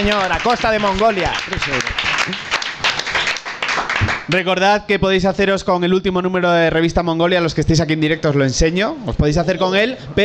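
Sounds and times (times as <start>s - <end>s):
speech: 0.0s - 2.6s, 4.3s - 10.2s
crowd applauding: 0.0s - 4.4s.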